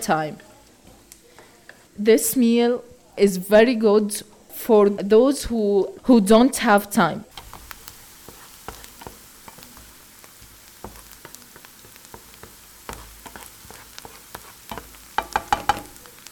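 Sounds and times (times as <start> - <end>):
speech: 0.0 - 0.5, 2.0 - 7.3
onion frying in a pan until golden: 0.0 - 3.6, 7.3 - 16.3.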